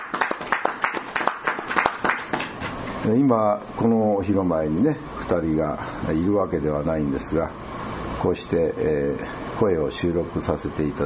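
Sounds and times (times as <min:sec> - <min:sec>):
people clapping to celebrate two birthdays: 0:00.0 - 0:02.7
speech: 0:03.0 - 0:07.6, 0:08.2 - 0:11.0.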